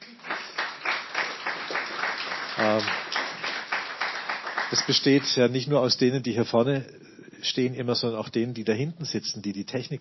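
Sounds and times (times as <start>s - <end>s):
audience applause: 0.0s - 5.5s
speech: 2.6s - 3.2s, 4.7s - 10.0s.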